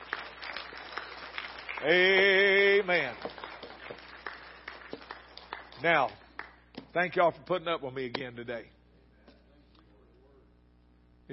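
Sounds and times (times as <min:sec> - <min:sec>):
audience clapping: 0:00.0 - 0:06.8
speech: 0:01.8 - 0:03.4, 0:05.8 - 0:06.2, 0:06.9 - 0:08.8.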